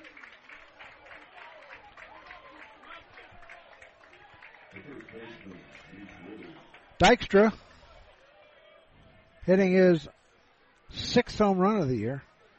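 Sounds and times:
baseball crowd applauding: 0:00.0 - 0:09.3
speech: 0:04.8 - 0:07.7, 0:09.5 - 0:10.2, 0:11.1 - 0:12.3.

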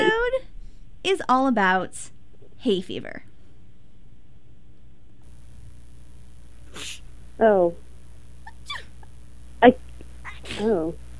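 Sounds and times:
speech: 0:01.0 - 0:03.3, 0:06.8 - 0:07.8, 0:09.6 - 0:09.8, 0:10.5 - 0:11.0
pre-recorded sneezes: 0:06.7 - 0:07.0.

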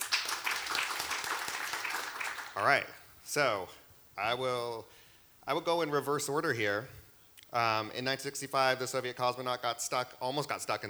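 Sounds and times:
crowd clapping: 0:00.0 - 0:02.7
speech: 0:02.6 - 0:10.8.

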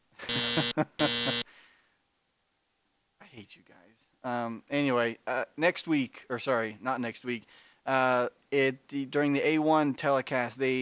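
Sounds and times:
harsh game-show style buzzer: 0:00.2 - 0:01.5
speech: 0:00.3 - 0:01.1, 0:03.4 - 0:10.8.

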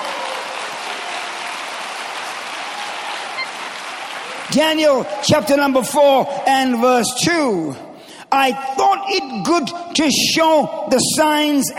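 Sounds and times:
audience clapping hands: 0:00.0 - 0:06.2
speech: 0:04.5 - 0:11.7.

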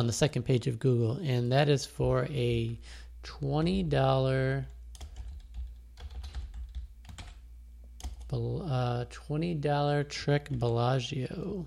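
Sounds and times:
speech: 0:00.0 - 0:04.8, 0:08.3 - 0:11.6
typing on a computer keyboard: 0:05.0 - 0:07.4.

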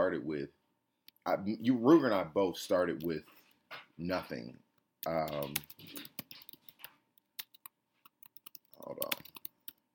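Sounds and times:
speech: 0:00.0 - 0:00.6, 0:01.2 - 0:06.1, 0:08.9 - 0:09.1
typing on a computer keyboard: 0:05.0 - 0:09.8.

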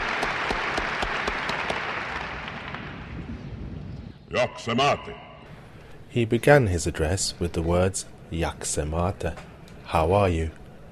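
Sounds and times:
applause from 2,000 delegates at Prague's Trade Fair Palace: 0:00.0 - 0:03.0
speech: 0:04.3 - 0:05.2, 0:06.1 - 0:10.6.

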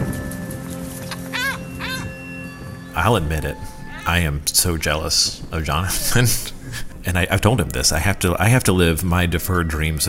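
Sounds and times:
steady low hum: 0:00.0 - 0:09.0
Johnny Rooks (striated caracaras) crying over their breeding colony: 0:01.0 - 0:02.3
speech: 0:03.0 - 0:10.0.

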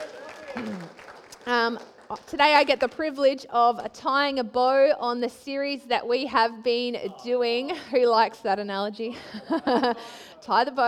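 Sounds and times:
audience applause: 0:00.0 - 0:02.4
speech: 0:01.5 - 0:10.8
laughter: 0:09.1 - 0:10.7.

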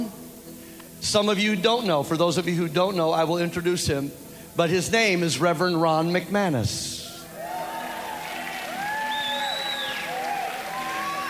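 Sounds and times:
speech: 0:01.1 - 0:07.0
whoops and cheers: 0:07.2 - 0:11.2
audience applause: 0:07.3 - 0:11.2.

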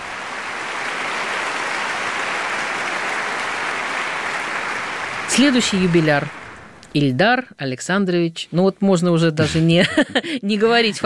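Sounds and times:
studio audience applause: 0:00.0 - 0:07.0
speech: 0:05.4 - 0:11.0
laughter: 0:09.4 - 0:11.0.

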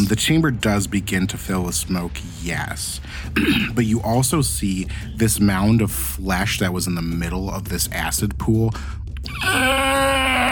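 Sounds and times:
speech: 0:00.1 - 0:09.8
person voicing a creature's scream: 0:09.3 - 0:10.5.

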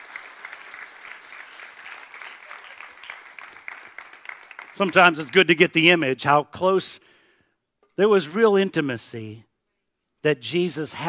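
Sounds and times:
audience applause: 0:00.0 - 0:05.6
speech: 0:04.8 - 0:07.1, 0:08.0 - 0:09.5, 0:10.2 - 0:11.0.

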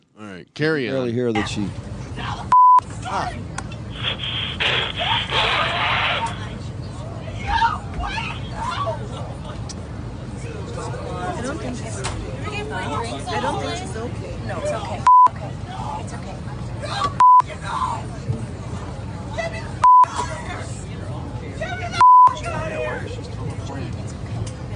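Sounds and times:
speech: 0:00.2 - 0:02.3, 0:03.1 - 0:03.6, 0:11.5 - 0:18.3
voices and chatter: 0:00.2 - 0:24.7
high-pitched censor bleeps: 0:02.6 - 0:02.8, 0:22.0 - 0:22.4.

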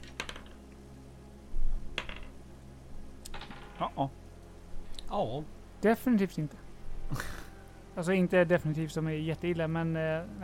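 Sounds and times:
dice clattering across a hard surface: 0:00.0 - 0:00.6, 0:02.0 - 0:02.4, 0:03.3 - 0:03.8
low steady hum: 0:00.0 - 0:10.4
speech: 0:03.8 - 0:04.2, 0:05.1 - 0:07.4, 0:08.0 - 0:10.4.

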